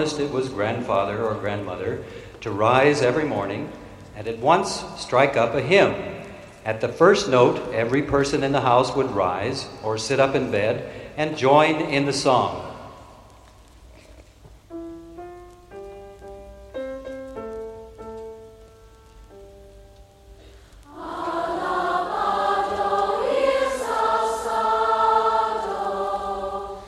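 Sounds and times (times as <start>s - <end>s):
morning hymn: 0.0s - 13.0s, 20.8s - 26.8s.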